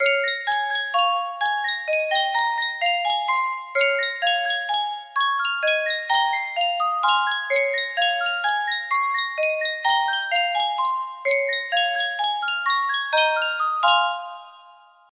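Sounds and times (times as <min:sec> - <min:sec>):
yunsheng music box: 0:00.0 - 0:15.1.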